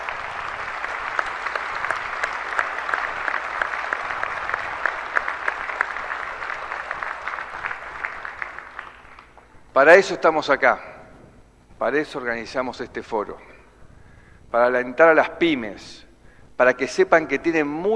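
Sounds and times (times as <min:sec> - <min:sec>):
audience applause: 0:00.0 - 0:09.4
speech: 0:09.8 - 0:10.9, 0:11.8 - 0:13.5, 0:14.5 - 0:17.9.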